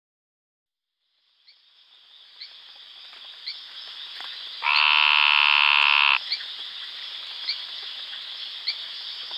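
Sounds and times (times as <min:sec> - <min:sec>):
Brongersma's snouted treefrog buzzing call: 0:04.6 - 0:06.4.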